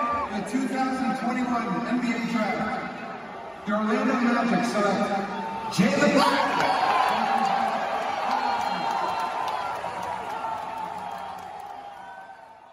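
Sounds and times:
Orlando Magic crowd cheering draft pick: 0.0 - 1.5, 2.2 - 12.7
speech: 0.4 - 3.0, 3.6 - 7.1.

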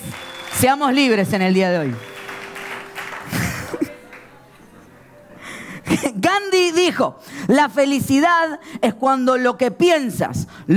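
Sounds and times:
audience applause: 0.0 - 4.4
speech: 0.6 - 2.1, 6.4 - 10.7
laughter: 3.0 - 4.1.

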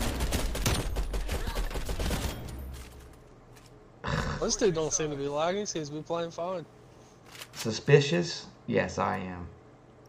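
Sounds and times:
rapid automatic gunfire from a 75-round magazine in an online shooter game: 0.0 - 2.5
speech: 4.4 - 6.8, 7.6 - 9.6.

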